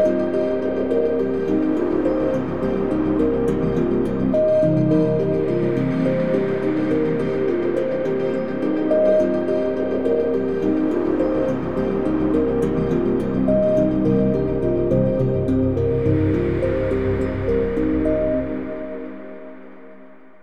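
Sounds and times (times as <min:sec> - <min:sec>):
ambient music: 0:00.0 - 0:20.4.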